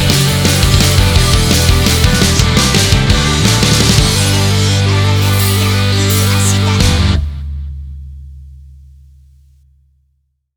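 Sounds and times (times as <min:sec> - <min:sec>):
rock karaoke backing track: 0:00.0 - 0:07.4.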